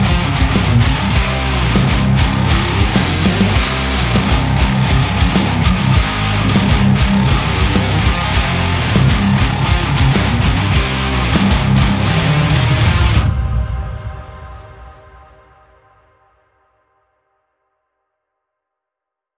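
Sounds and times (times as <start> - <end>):
high-gain distorted electric guitar through a Kemper amp: 0.0 - 14.3.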